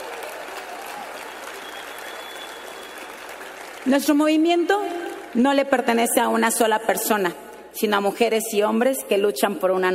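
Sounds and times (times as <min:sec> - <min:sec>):
loud applause from audience: 0:00.0 - 0:04.2
speech: 0:03.8 - 0:09.9.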